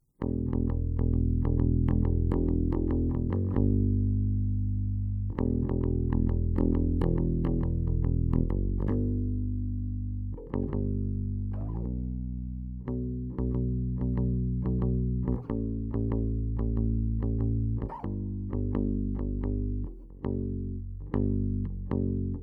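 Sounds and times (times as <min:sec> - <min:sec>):
bass: 0:00.0 - 0:22.4.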